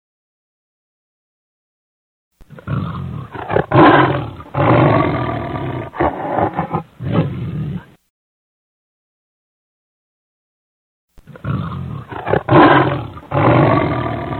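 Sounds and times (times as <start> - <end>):
lion giving deep throaty roars: 2.5 - 8.0, 11.2 - 14.3.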